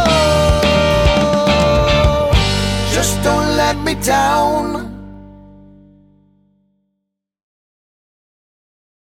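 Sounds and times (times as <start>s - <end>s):
rock music: 0.0s - 6.0s.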